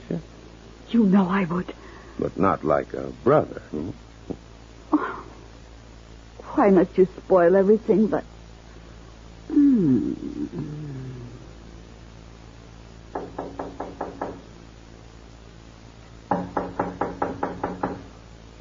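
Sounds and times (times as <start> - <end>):
speech: 1.0 - 4.4, 6.6 - 8.3, 9.8 - 10.8
knocking on a door: 13.1 - 14.5, 16.3 - 18.1.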